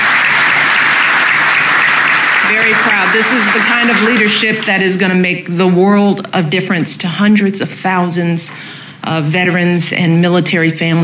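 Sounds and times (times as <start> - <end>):
audience applause at a speech honoring a veterans' IT training program: 0.0 - 5.0
speech: 2.5 - 11.0.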